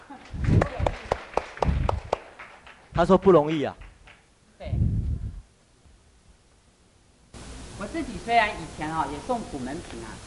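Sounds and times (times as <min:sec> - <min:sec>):
audience applause: 0:00.4 - 0:03.1
speech: 0:03.0 - 0:03.8, 0:08.0 - 0:10.2.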